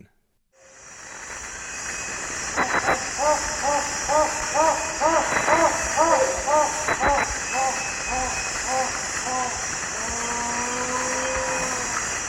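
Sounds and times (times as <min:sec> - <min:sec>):
Rufescent tiger heron hooting in Ecuador: 0:02.5 - 0:12.1.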